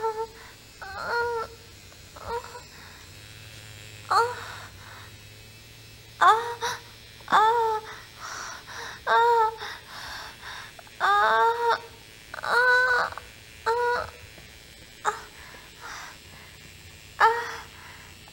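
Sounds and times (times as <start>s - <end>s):
woman moaning while masturbating with a vibrator: 0.0s - 1.6s, 2.2s - 2.8s, 4.1s - 5.1s, 6.2s - 14.2s, 15.0s - 16.2s, 17.2s - 17.9s.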